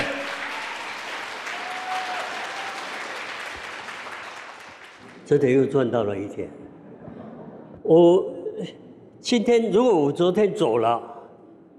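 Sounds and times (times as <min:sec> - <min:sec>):
audience clapping: 0:00.0 - 0:05.5
speech: 0:05.3 - 0:06.6, 0:07.9 - 0:11.1.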